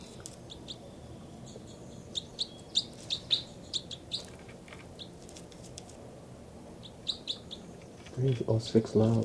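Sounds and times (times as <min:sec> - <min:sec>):
recorded bird calls and chirps: 0:00.0 - 0:05.2, 0:06.8 - 0:08.2
speech: 0:08.2 - 0:09.2.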